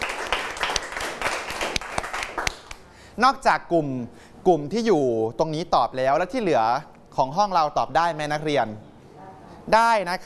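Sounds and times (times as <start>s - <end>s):
students clapping hands: 0.0s - 2.9s
speech: 3.2s - 8.9s, 9.6s - 10.2s.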